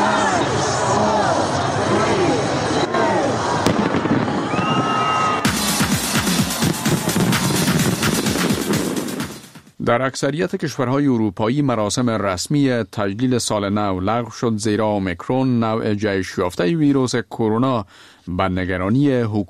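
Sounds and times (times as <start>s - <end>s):
crowd murmuring: 0.0s - 4.5s
whistling firework rockets: 3.6s - 9.2s
New Year fireworks crackling and booming: 3.6s - 9.7s
speech: 9.9s - 19.4s.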